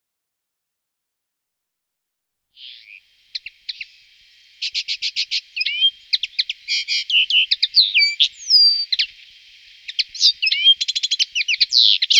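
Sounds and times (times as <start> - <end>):
common linnet twittering: 2.6 - 12.1.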